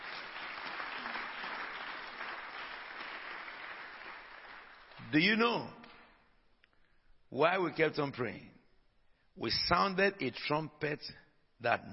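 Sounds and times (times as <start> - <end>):
audience applause at a church convention: 0.0 - 5.0
speech: 5.1 - 5.8, 7.3 - 8.6, 9.4 - 11.9.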